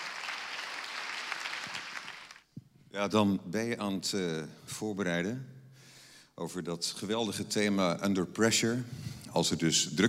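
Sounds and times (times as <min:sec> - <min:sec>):
audience applause: 0:00.0 - 0:02.4
speech: 0:03.0 - 0:05.6, 0:06.4 - 0:10.0.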